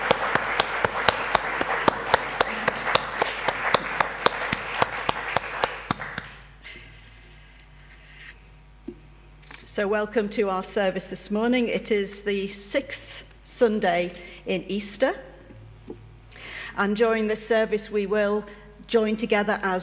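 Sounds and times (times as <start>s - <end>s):
round of applause: 0.0s - 6.5s
speech: 9.8s - 15.3s, 16.8s - 19.8s.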